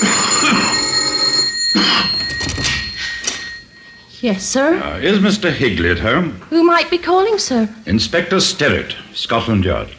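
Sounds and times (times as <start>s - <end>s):
doorbell ringing: 0.0s - 4.2s
speech: 4.2s - 9.9s.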